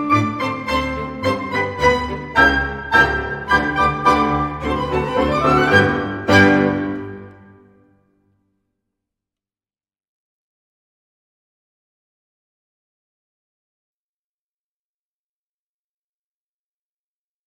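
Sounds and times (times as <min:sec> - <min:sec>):
Russian march: 0:00.0 - 0:07.8.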